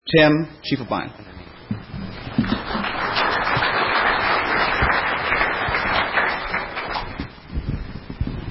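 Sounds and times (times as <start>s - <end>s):
speech: 0.1s - 1.3s
crowd applause: 2.2s - 7.3s.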